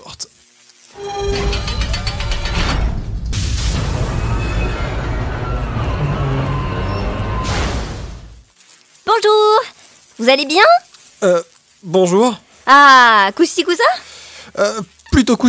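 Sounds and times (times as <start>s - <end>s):
high mechanical whine: 1.0s - 8.3s
crash and explosion sound effect: 1.0s - 8.4s
speech: 10.2s - 15.4s.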